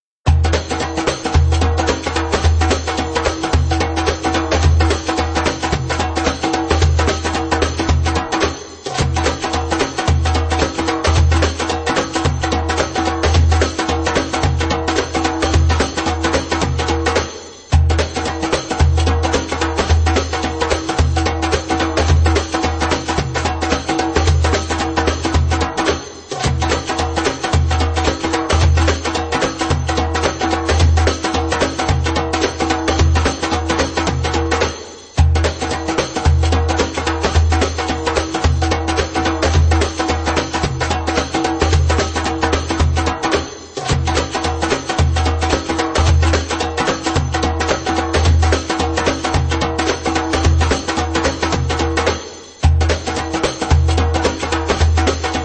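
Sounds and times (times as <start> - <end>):
fast maqsum rhythm: 0.3 - 55.4.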